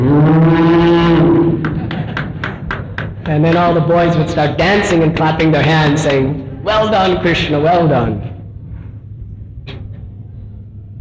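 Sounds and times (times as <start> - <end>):
voice imitating a cow moo: 0.0 - 1.6
speech: 3.4 - 8.3.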